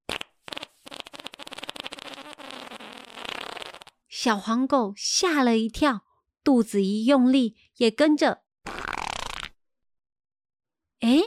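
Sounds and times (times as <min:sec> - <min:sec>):
long sputtering fart: 0:00.0 - 0:04.1, 0:08.6 - 0:09.6
speech: 0:04.2 - 0:08.4.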